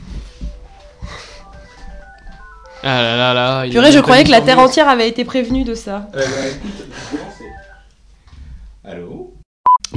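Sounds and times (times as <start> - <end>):
phone ringing with a melodic electronic ringtone: 0.3 - 3.5, 7.4 - 7.8
speech: 2.8 - 7.3.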